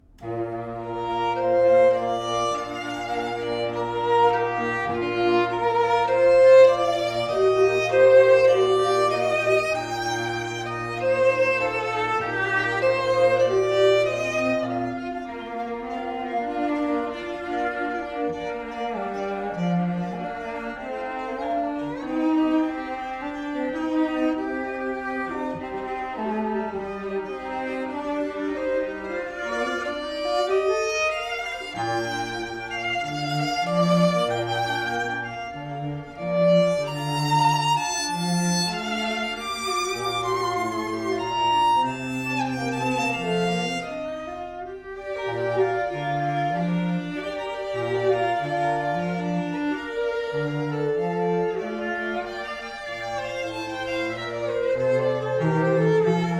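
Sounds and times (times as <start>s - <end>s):
musical trio: 0.0s - 56.3s.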